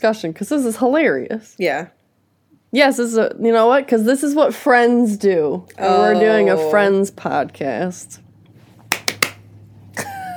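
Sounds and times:
speech: 0.0s - 2.0s, 2.7s - 8.2s
hand claps in a rhythm: 8.9s - 9.4s.

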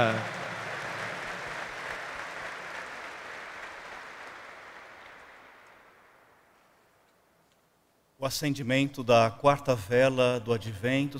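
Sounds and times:
speech: 0.0s - 0.4s, 8.2s - 11.1s
audience applause: 0.0s - 6.2s.

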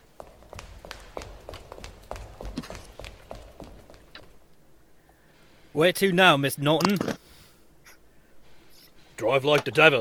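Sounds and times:
footsteps of a man hurrying down a pathway: 0.0s - 4.6s
speech: 5.8s - 7.2s, 9.2s - 10.0s.

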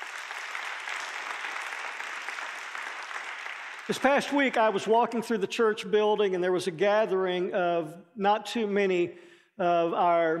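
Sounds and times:
audience applause: 0.0s - 4.7s
speech: 3.9s - 10.3s.

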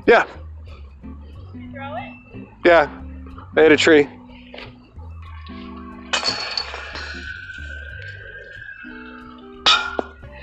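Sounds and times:
speech: 0.0s - 0.4s, 2.6s - 3.0s, 3.6s - 4.7s
disc golf disc hitting basket chains: 6.1s - 7.5s, 9.7s - 10.2s.

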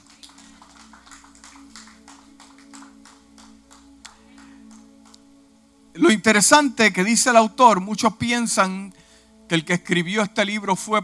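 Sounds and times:
audience applause: 0.0s - 4.8s
speech: 6.0s - 11.0s.

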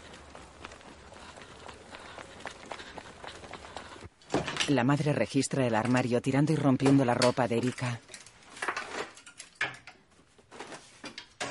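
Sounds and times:
running footsteps as a woman hurries away: 0.0s - 4.8s
speech: 4.7s - 8.1s.

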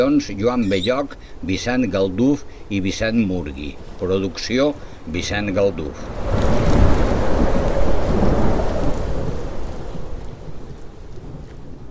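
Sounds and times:
speech: 0.0s - 6.7s
heavy rain pouring: 1.8s - 11.8s
deep thunder rumbling: 5.8s - 11.8s.

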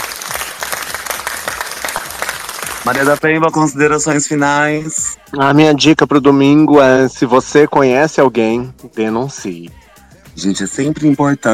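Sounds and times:
small group applauding: 0.0s - 3.2s
speech: 2.9s - 9.8s, 10.4s - 11.5s.

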